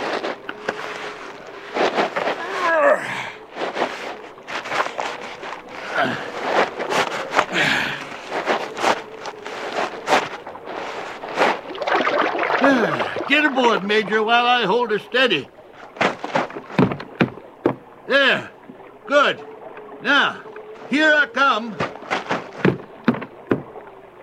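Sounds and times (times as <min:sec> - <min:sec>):
wooden raft scraping and bumping sliding into a river: 0:00.0 - 0:14.8, 0:15.6 - 0:23.8
water splashing: 0:00.0 - 0:24.2
speech: 0:13.6 - 0:15.5.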